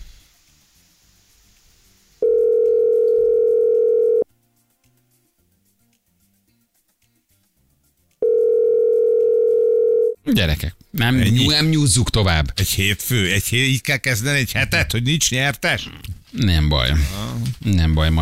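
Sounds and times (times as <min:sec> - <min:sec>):
telephone dial tone while calling a radio listener: 0:02.2 - 0:04.2, 0:08.2 - 0:10.2
speech: 0:10.4 - 0:18.2.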